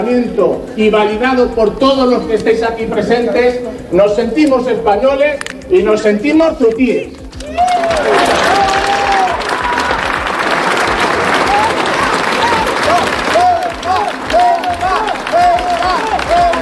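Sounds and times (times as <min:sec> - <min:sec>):
speech: 0:00.0 - 0:08.6
crowd shouting at rally: 0:07.4 - 0:16.5.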